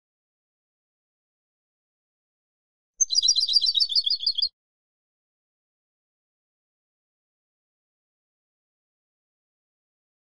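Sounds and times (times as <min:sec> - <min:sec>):
European goldfinch song: 0:03.0 - 0:04.5.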